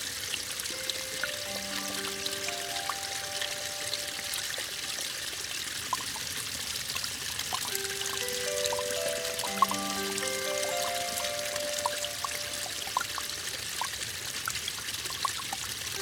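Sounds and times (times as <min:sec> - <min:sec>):
mountain stream flowing: 0:00.0 - 0:15.9
music: 0:00.1 - 0:05.0, 0:07.7 - 0:13.0.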